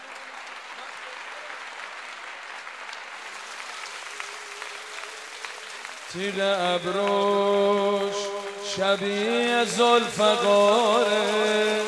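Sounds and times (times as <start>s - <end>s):
group hand clapping in time: 0.0s - 11.8s
person singing a verse: 6.1s - 11.8s
speech: 6.1s - 11.8s.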